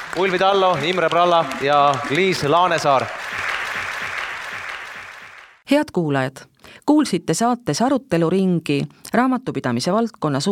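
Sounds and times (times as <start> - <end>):
audience applause: 0.0 - 5.6
speech: 0.2 - 3.2, 5.7 - 10.5.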